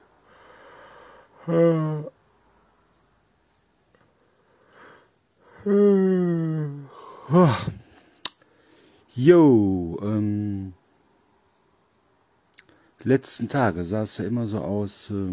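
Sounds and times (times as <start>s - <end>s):
person yawning: 1.3s - 2.2s, 5.4s - 8.0s
speech: 1.5s - 2.1s, 5.6s - 6.0s, 7.3s - 7.8s, 9.2s - 10.8s, 13.0s - 15.3s.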